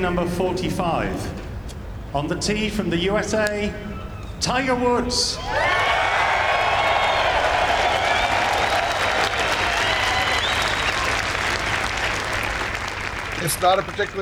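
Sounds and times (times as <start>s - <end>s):
speech: 0.0s - 1.4s, 2.1s - 5.7s, 13.4s - 14.2s
scattered cheers and whistles: 5.4s - 14.1s
large golf crowd applauding: 6.2s - 14.2s.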